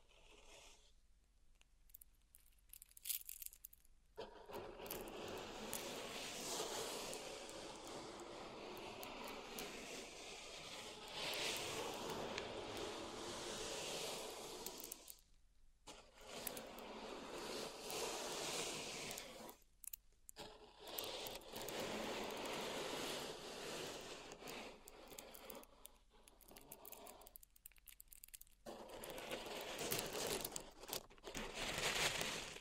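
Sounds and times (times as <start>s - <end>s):
pink salt raked and scraped through a zen garden: 4.8s - 15.2s, 15.9s - 19.6s, 20.4s - 27.4s, 28.7s - 32.5s.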